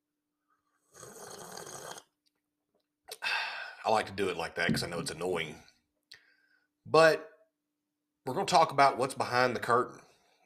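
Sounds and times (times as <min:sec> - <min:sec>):
sipping hot black coffee: 0:00.9 - 0:02.1
speech: 0:03.9 - 0:05.7, 0:06.9 - 0:07.3, 0:08.2 - 0:10.0.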